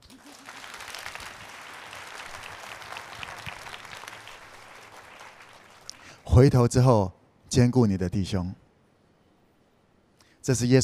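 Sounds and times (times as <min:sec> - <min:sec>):
audience applause: 0:00.0 - 0:06.2
speech: 0:06.4 - 0:08.6, 0:10.4 - 0:10.8.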